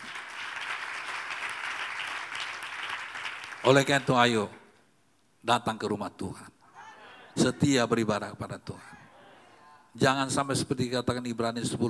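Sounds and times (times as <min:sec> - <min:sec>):
audience applauding: 0:00.0 - 0:04.1
speech: 0:03.6 - 0:04.6, 0:05.4 - 0:06.6, 0:07.4 - 0:09.0, 0:10.0 - 0:11.8.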